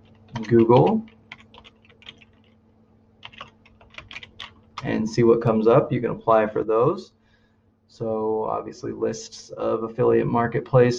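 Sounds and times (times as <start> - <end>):
typing on a computer keyboard: 0.0 - 2.6, 3.2 - 4.9
speech: 0.4 - 1.1, 4.8 - 7.2, 7.9 - 10.9.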